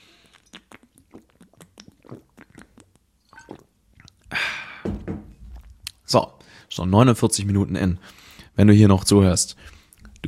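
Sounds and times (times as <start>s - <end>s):
person sipping water: 0.0s - 4.4s, 9.6s - 10.2s
speech: 6.1s - 10.2s.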